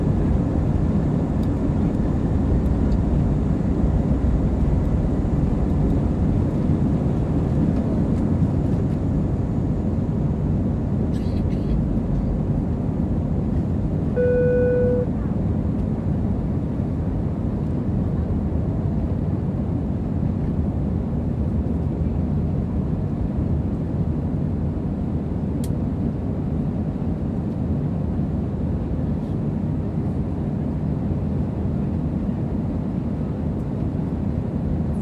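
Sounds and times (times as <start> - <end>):
plane roaring in flight from Ft.Lauderdale to Cancun: 0.0 - 35.0
faint high whine: 14.1 - 15.1
soft tone: 14.2 - 15.2.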